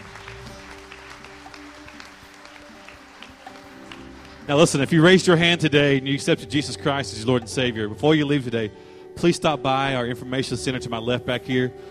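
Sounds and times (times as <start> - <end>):
people clapping: 0.0 - 5.6
speech: 4.5 - 11.8.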